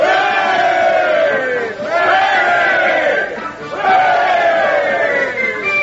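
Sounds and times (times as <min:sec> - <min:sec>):
parade crowd cheering: 0:00.0 - 0:05.7.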